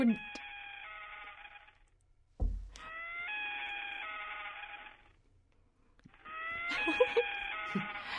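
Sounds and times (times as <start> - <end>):
common loon calling: 0.0 - 1.8, 2.8 - 5.2, 6.1 - 8.1
dull thump: 2.4 - 2.8.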